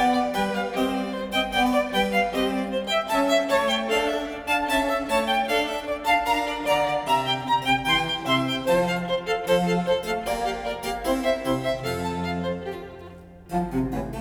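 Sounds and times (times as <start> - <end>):
trio sonata for two violins and basso continuo: 0.0 - 14.1.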